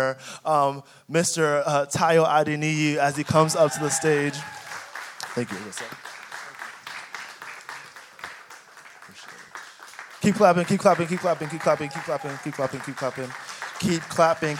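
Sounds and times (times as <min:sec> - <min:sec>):
speech: 0:00.0 - 0:04.6, 0:05.4 - 0:06.2, 0:10.2 - 0:14.5
audience applause: 0:03.1 - 0:14.5.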